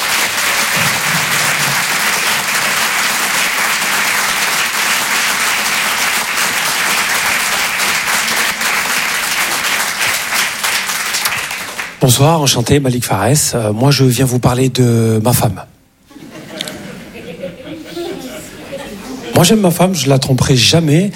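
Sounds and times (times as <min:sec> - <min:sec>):
comedy club audience clapping for a comedian: 0:00.0 - 0:12.2
speech: 0:12.0 - 0:15.7, 0:19.4 - 0:21.1
laughter: 0:16.1 - 0:19.5.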